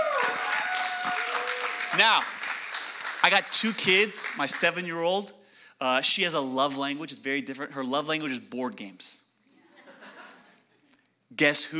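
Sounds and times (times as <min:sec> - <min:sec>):
audience applause: 0:00.0 - 0:04.7
speech: 0:02.0 - 0:02.4, 0:03.2 - 0:09.2, 0:11.3 - 0:11.7
laughter: 0:09.6 - 0:10.6.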